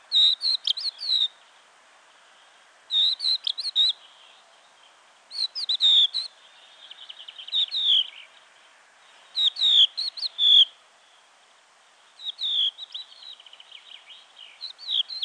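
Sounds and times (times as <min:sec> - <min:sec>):
crested lark calling: 0:00.1 - 0:01.4, 0:02.9 - 0:04.1, 0:05.3 - 0:08.3, 0:09.3 - 0:10.8, 0:12.2 - 0:15.2.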